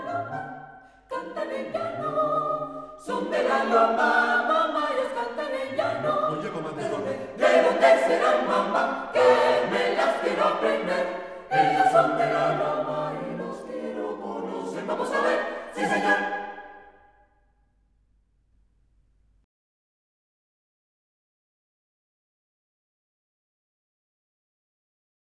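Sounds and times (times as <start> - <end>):
chamber choir singing: 0.0 - 17.1.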